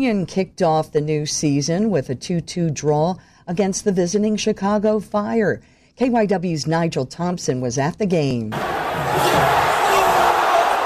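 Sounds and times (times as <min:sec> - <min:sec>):
speech: 0:00.0 - 0:09.6
soccer crowd groaning at Subaru Park: 0:08.6 - 0:10.8.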